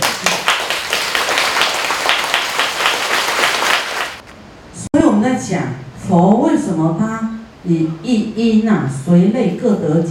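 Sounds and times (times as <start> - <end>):
audience clapping hands: 0.0 - 4.2
speech: 5.5 - 10.0.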